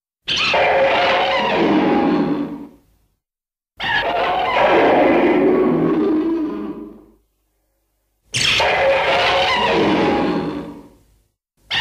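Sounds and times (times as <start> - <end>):
Rodan monster roaring: 0.4 - 2.8, 3.8 - 7.2, 8.6 - 11.0.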